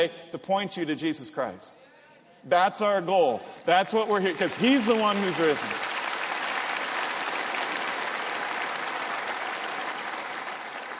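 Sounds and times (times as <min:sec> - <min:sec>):
speech: 0:00.0 - 0:01.8, 0:02.4 - 0:06.0
audience clapping after a song: 0:03.7 - 0:10.9.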